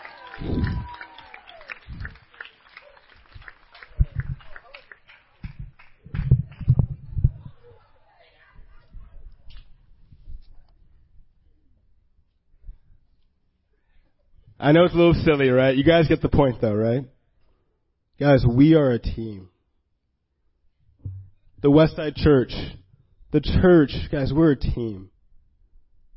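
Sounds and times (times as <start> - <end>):
applause: 0.0 - 7.3
speech: 14.6 - 17.1, 18.2 - 19.5, 21.6 - 25.1.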